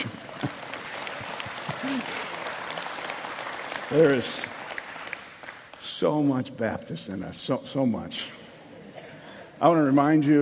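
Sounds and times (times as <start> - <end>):
audience clapping: 0.0 - 6.4
speech: 1.9 - 2.2, 3.9 - 4.6, 6.0 - 8.4, 9.6 - 10.4.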